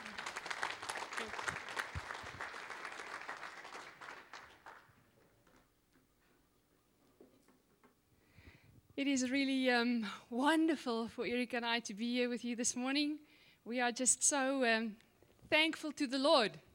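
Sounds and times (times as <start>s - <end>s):
church congregation clapping: 0.0s - 5.8s
speech: 9.0s - 16.6s.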